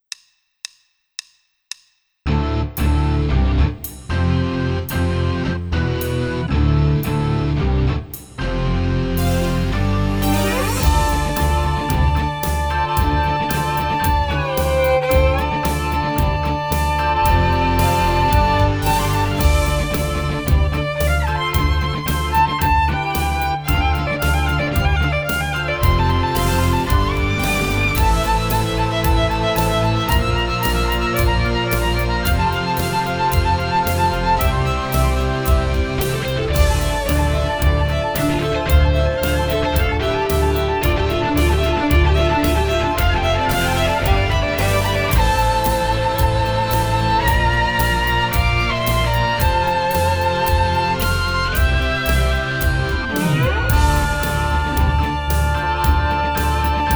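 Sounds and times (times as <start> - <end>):
guitar power chords: 2.3 - 56.9.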